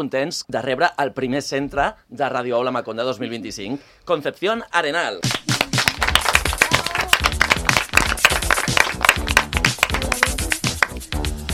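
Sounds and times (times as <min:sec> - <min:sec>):
speech: 0:00.0 - 0:05.5
audience clapping: 0:05.2 - 0:11.2.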